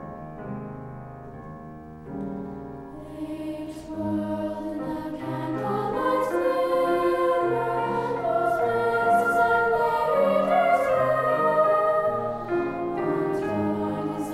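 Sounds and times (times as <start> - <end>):
soprano and alto choir singing a waltz: 2.9 - 14.3.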